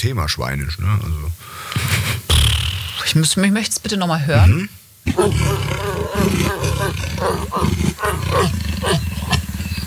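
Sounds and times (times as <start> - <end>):
speech: 0.0 - 2.2, 3.1 - 9.1
leopard growling: 5.0 - 9.8.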